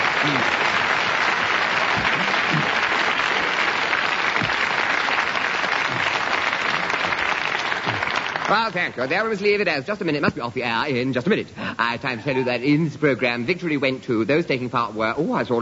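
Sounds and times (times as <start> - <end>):
studio audience applause: 0.0 - 9.5
speech: 8.5 - 15.6.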